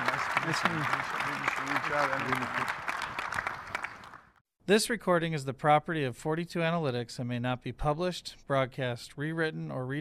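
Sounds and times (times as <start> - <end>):
audience applause for the panelists: 0.0 - 4.4
speech: 0.5 - 2.9, 4.7 - 9.9.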